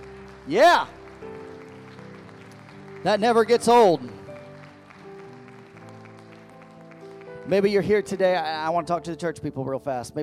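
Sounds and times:
audience clapping hands in praise: 0.0 - 8.6
speech: 0.5 - 1.4, 3.0 - 4.2, 7.5 - 10.2.

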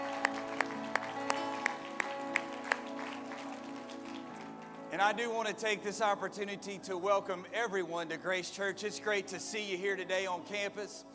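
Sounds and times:
audience clapping: 0.0 - 4.9
speech: 5.0 - 11.1.

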